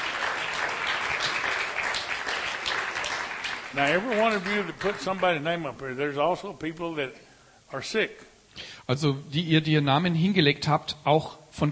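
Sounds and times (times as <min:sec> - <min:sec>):
audience applause: 0:00.0 - 0:05.6
speech: 0:03.7 - 0:11.7.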